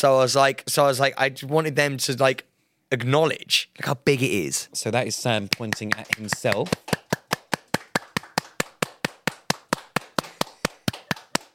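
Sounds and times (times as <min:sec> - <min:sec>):
speech: 0:00.0 - 0:06.9
hand clapping: 0:05.5 - 0:11.5.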